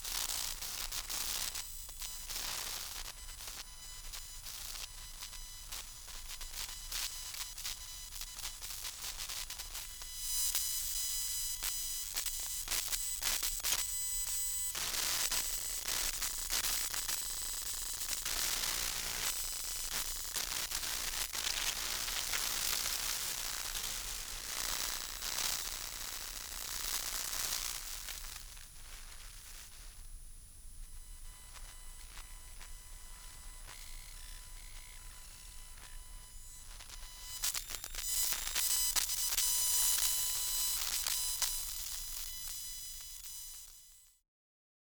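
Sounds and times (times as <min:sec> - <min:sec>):
electromagnetic interference noise in Australia: 0:00.0 - 0:43.9.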